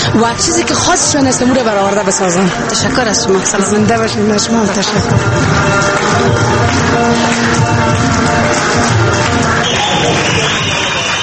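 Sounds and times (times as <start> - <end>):
speech: 0.1 - 11.0
audience applause in hall: 4.3 - 11.2
audience cheering in hall: 5.8 - 11.2.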